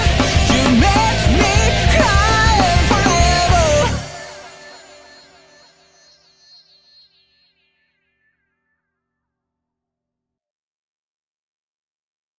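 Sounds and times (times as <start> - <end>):
rock music: 0.0 - 5.0.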